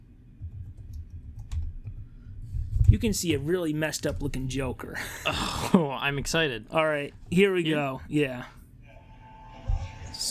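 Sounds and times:
soft typing on a computer keyboard: 0.4 - 2.0
speech: 2.9 - 8.6.

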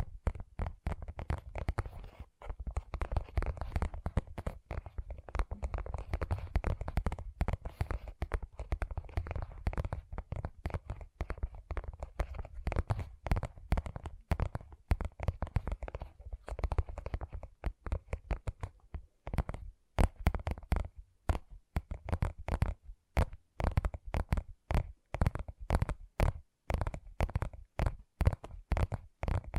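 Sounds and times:
gentle tapping: 0.0 - 29.5.

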